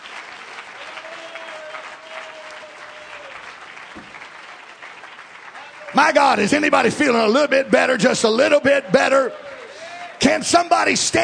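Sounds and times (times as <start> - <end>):
audience clapping hands: 0.0 - 8.7
speech: 5.9 - 9.4, 10.3 - 11.2.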